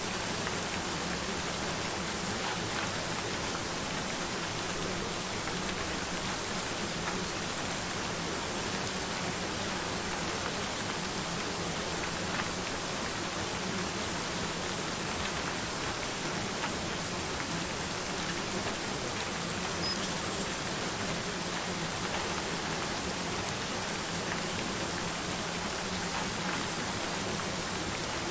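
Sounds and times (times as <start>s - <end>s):
rain: 0.0s - 28.2s.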